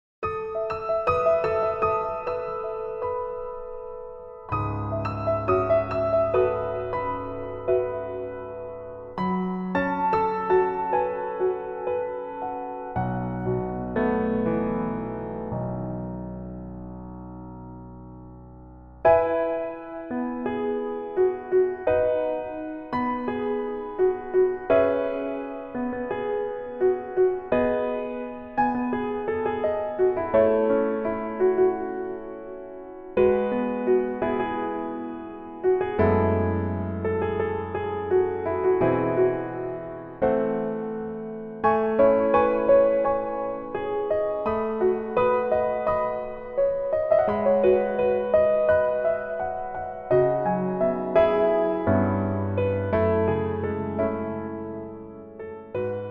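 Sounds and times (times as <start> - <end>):
piano version melody backing track: 0.2 - 56.0.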